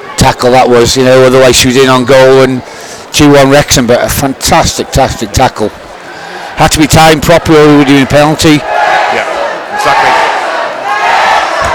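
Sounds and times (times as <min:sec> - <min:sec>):
speech: 0:00.2 - 0:05.8, 0:06.6 - 0:10.1
football crowd roaring and chanting: 0:06.0 - 0:11.7.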